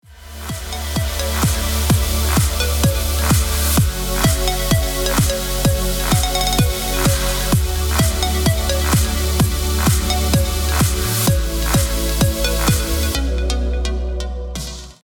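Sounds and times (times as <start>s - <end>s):
electronic dance music: 0.0s - 15.0s.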